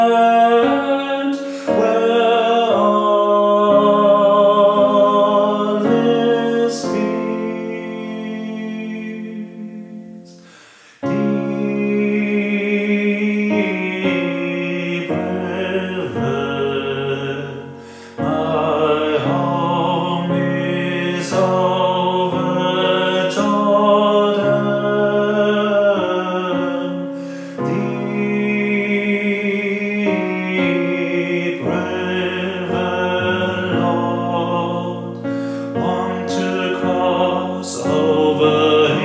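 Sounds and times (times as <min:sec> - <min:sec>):
tenor singing: 0:00.0 - 0:39.0.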